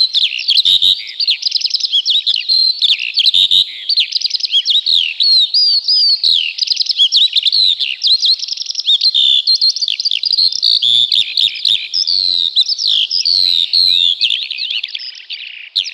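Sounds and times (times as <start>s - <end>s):
Eurasian skylark song: 0.0s - 15.9s.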